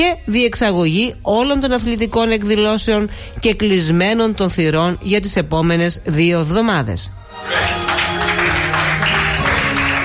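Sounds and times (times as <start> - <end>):
speech: 0.0 - 7.9
applause: 7.4 - 10.0.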